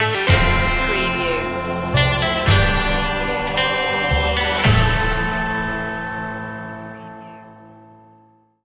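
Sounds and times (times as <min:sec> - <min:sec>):
western bravery music stinger: 0:00.0 - 0:07.7.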